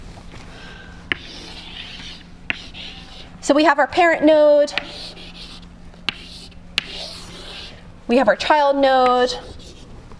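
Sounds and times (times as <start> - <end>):
chalk tapping on a chalkboard: 1.1 - 3.3, 4.7 - 7.8
chalk scratching on a chalkboard drawing a tree diagram: 1.1 - 3.4, 4.8 - 7.8, 9.2 - 9.9
speech: 3.5 - 5.2, 8.1 - 9.5.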